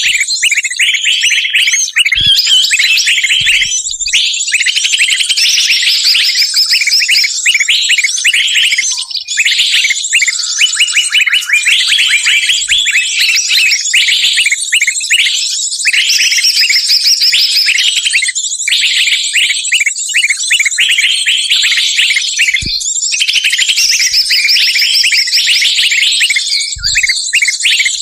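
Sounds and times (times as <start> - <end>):
bird lure calls of sharp high chirps and trills: 0.0 - 28.0.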